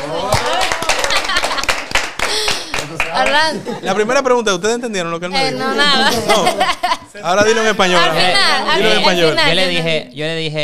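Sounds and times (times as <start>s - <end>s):
audience clapping: 0.0s - 3.6s
laughter: 0.1s - 4.1s, 5.9s - 8.9s
speech: 3.1s - 10.6s.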